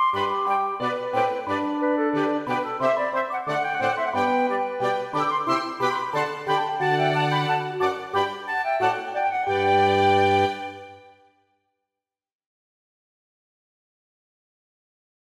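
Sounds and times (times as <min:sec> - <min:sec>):
march for flute and small ensemble: 0:00.0 - 0:11.2.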